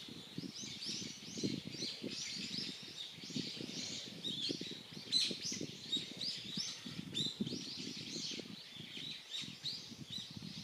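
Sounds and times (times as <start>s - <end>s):
birds at Unzen: 0.0s - 10.6s.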